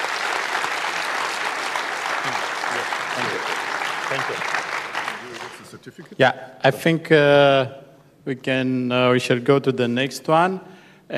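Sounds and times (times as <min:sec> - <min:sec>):
audience applause at an award presentation: 0:00.0 - 0:05.8
speech: 0:02.2 - 0:04.6, 0:05.7 - 0:11.1.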